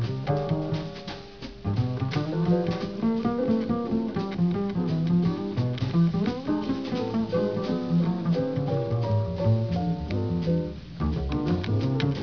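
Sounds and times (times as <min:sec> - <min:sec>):
bass: 0:00.0 - 0:12.2.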